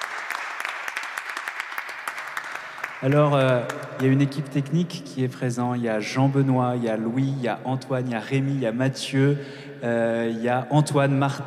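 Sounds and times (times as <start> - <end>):
audience applause at a concert: 0.0 - 3.8
speech: 3.0 - 11.4.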